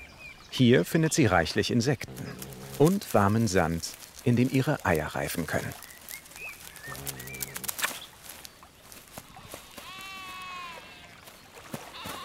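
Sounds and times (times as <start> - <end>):
birdsong: 0.0 - 12.2
speech: 0.6 - 5.9
sheep bleating: 2.0 - 5.8, 6.6 - 7.9, 9.2 - 11.2, 11.9 - 12.2.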